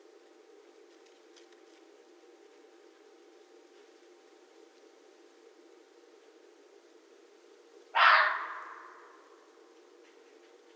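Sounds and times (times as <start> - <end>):
red fox barking: 7.9 - 9.2.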